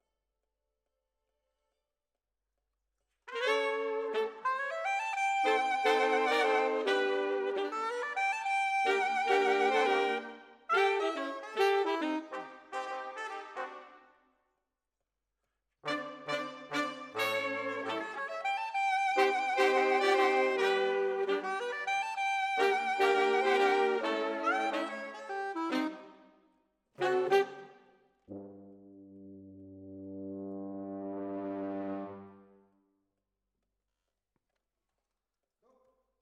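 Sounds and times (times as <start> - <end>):
saxophone: 3.3 - 14.0, 15.8 - 26.3, 27.0 - 28.8.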